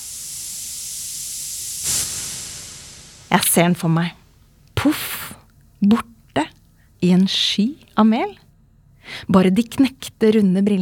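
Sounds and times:
burning dynamite fuse hissing: 0.0s - 4.5s
speech: 3.3s - 4.2s, 4.8s - 5.2s, 5.8s - 8.4s, 9.1s - 10.8s.

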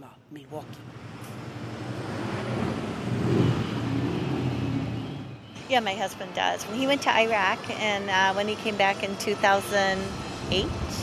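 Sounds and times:
speech: 0.3s - 1.1s, 5.7s - 11.0s
Harley-Davidson motorcycle engines rumbling: 0.4s - 11.0s.

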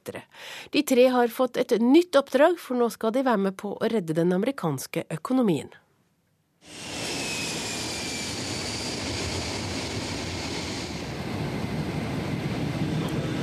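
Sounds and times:
speech: 0.1s - 5.8s
Boeing 747 carrying shuttle flying low: 6.6s - 13.4s.

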